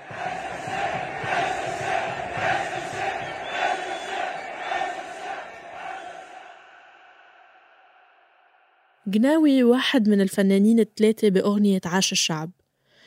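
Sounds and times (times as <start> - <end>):
large stadium crowd chanting a slogan: 0.0 - 9.0
speech: 9.1 - 12.6.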